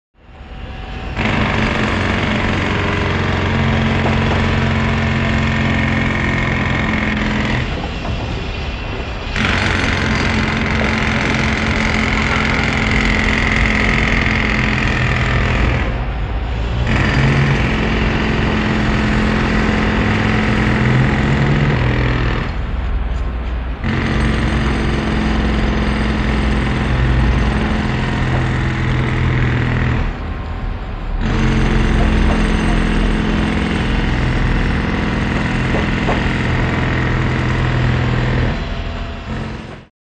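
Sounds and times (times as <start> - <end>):
background construction machinery: 0.2 - 39.9
pneumatic drill at construction site: 0.3 - 30.2, 31.2 - 39.9.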